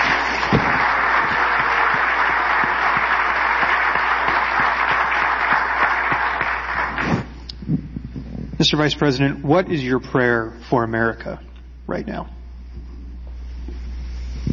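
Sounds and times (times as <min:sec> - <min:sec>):
audience applause: 0:00.0 - 0:07.4
speech: 0:08.6 - 0:12.4.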